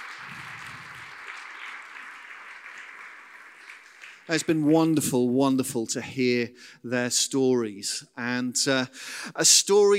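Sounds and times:
audience applause: 0.0 - 4.7
speech: 4.3 - 9.9.

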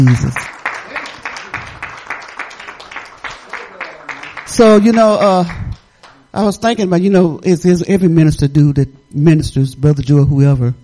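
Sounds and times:
speech: 0.0 - 0.5, 4.6 - 5.6, 6.4 - 10.8
audience clapping: 0.0 - 6.5.

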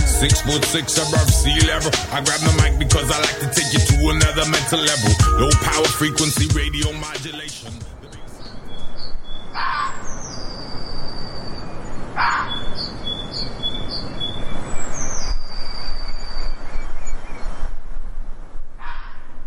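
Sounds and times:
speech: 0.2 - 7.9
red fox calls in springtime: 9.5 - 10.0, 12.1 - 12.7, 18.8 - 19.4.

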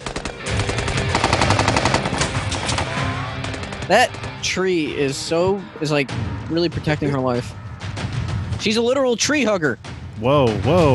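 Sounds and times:
gunfire: 0.0 - 4.4
speech: 3.9 - 7.6, 8.6 - 10.9.

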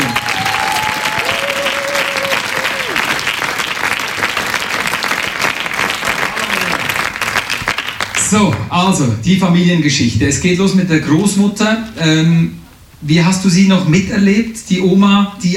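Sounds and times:
audience applause: 0.0 - 8.7
speech: 8.3 - 15.5.

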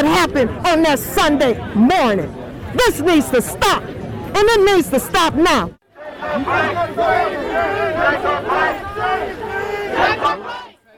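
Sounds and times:
speech: 0.2 - 10.6
protest crowd chanting: 5.8 - 10.9.

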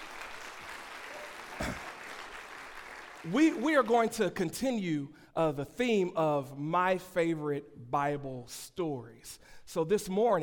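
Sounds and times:
round of applause: 0.0 - 4.2
speech: 3.2 - 10.4.

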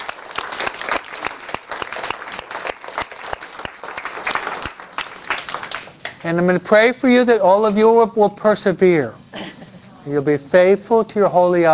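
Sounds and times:
crowd applauding: 0.0 - 6.2
speech: 6.2 - 9.2, 10.0 - 11.7.

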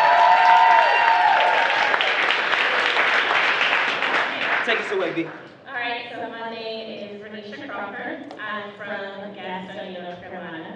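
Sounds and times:
audience applause: 0.0 - 5.4
speech: 4.7 - 5.5.

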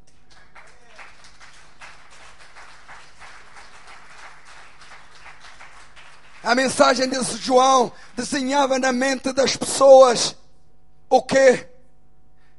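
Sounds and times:
applause: 0.0 - 8.9
speech: 6.5 - 10.4, 11.1 - 11.7.

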